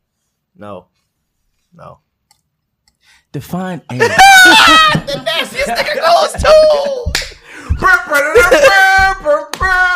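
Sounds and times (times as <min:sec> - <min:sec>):
speech: 0:00.6 - 0:01.0, 0:01.7 - 0:02.1, 0:03.3 - 0:07.2, 0:07.8 - 0:09.9
laughter: 0:04.0 - 0:09.0
people clapping hands: 0:07.0 - 0:07.4, 0:09.0 - 0:09.9.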